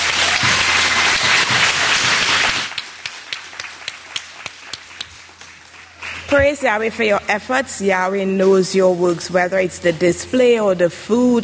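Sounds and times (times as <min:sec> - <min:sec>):
audience applause: 0:00.0 - 0:06.5
speech: 0:06.4 - 0:11.4.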